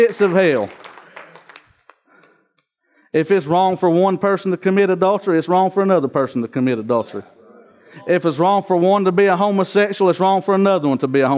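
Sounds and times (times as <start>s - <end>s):
speech: 0.0s - 0.9s, 3.1s - 11.3s
audience clapping: 0.0s - 2.5s.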